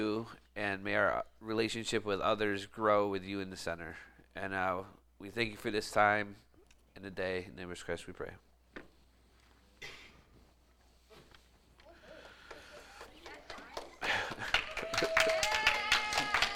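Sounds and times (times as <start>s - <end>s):
speech: 0.0s - 8.5s
people clapping: 11.8s - 16.5s.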